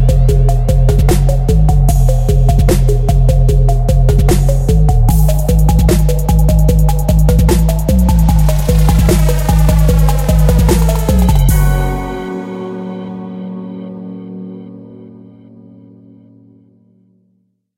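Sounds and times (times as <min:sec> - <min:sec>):
trap drums: 0:00.0 - 0:12.6.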